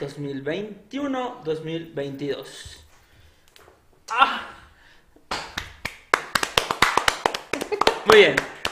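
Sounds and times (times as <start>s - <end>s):
speech: 0.0s - 2.8s, 4.1s - 4.5s, 8.0s - 8.6s
weak applause: 5.8s - 8.7s.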